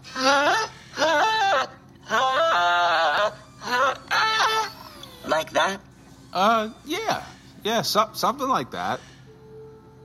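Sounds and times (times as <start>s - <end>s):
person humming a tune: 0.0s - 5.4s
speech: 7.7s - 9.1s.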